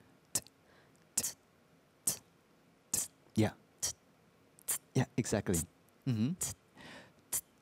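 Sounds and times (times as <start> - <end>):
person vocally imitating a basic hi-hat drum: 0.0 - 2.3, 2.9 - 4.0, 4.6 - 6.6, 7.3 - 7.6
speech: 3.4 - 3.6, 5.0 - 6.6.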